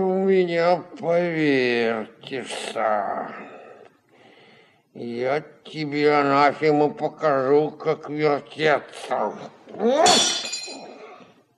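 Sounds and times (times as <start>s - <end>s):
speech: 0.0s - 3.6s, 5.0s - 10.5s
glass carafe smashing: 10.0s - 10.8s
glass shards tinkling: 10.1s - 11.0s.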